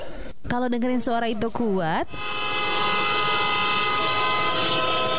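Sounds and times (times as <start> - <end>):
speech: 0.5 - 2.4
vehicle horn honking on the road: 2.1 - 5.1.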